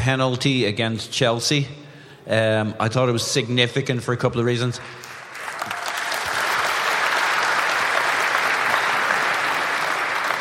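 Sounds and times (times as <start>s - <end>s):
speech: 0.0s - 5.1s
live audience applause: 5.0s - 10.4s.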